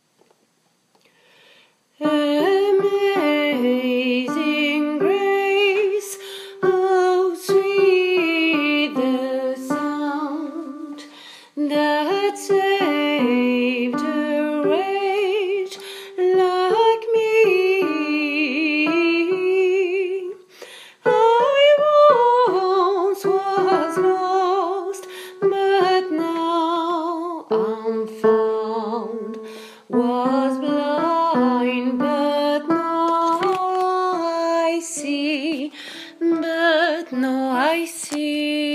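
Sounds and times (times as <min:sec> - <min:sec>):
alto hymn melody: 0:02.0 - 0:38.7.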